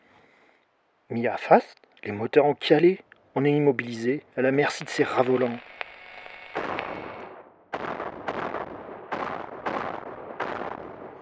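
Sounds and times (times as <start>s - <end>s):
speech: 1.1s - 5.7s
grenades: 6.5s - 11.2s
gunfire: 6.5s - 11.2s.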